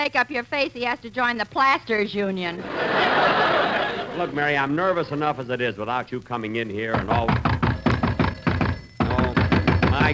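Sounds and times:
speech: 0:00.0 - 0:03.5, 0:04.2 - 0:07.5
laughter: 0:02.6 - 0:05.2
firm hollow knocks on a door: 0:06.9 - 0:10.1.

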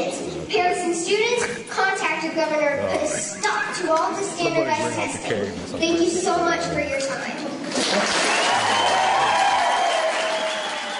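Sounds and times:
speech: 0:01.1 - 0:09.2
crowd cheering and applauding: 0:07.7 - 0:10.9.

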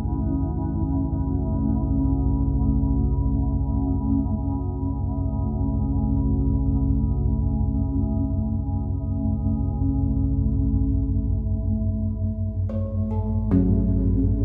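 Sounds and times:
binaural beats low drone with pulsing waves: 0:00.0 - 0:14.4.

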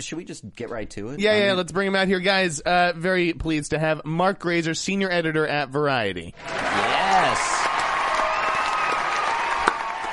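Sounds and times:
speech: 0:00.0 - 0:07.6
canned applause sound effect: 0:06.4 - 0:10.1.

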